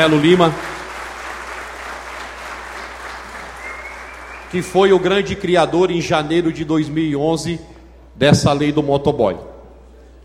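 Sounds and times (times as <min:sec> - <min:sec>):
speech: 0:00.0 - 0:00.7, 0:04.5 - 0:09.5
crowd applause for a vice-mayor at a civic gathering: 0:00.0 - 0:05.2.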